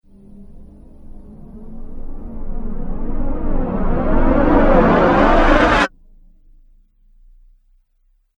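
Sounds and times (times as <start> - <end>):
flanged riser stopping abruptly: 0.1 - 5.9.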